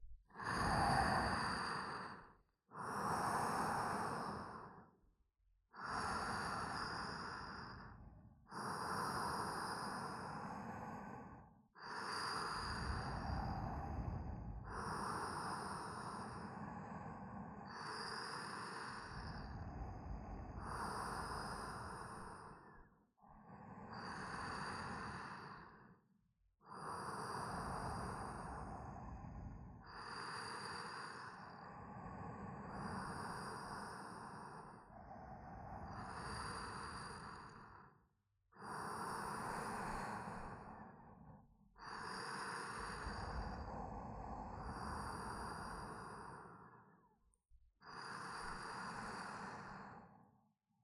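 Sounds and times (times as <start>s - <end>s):
sleep breathing: 0.0s - 5.0s, 5.7s - 50.5s.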